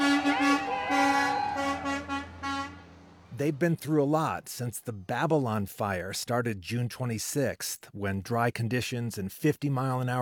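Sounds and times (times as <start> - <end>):
fire truck horns blaring: 0.0 - 4.0
heavy fire truck engines rumbling as trucks pass by: 0.0 - 5.8
speech: 3.4 - 10.2.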